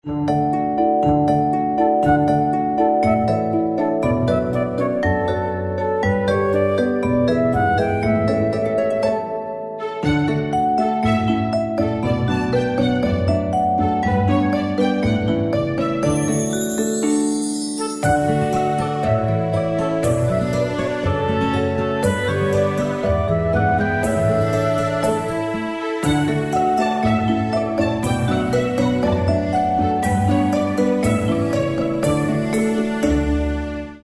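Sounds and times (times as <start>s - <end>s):
background music: 0.0s - 34.0s.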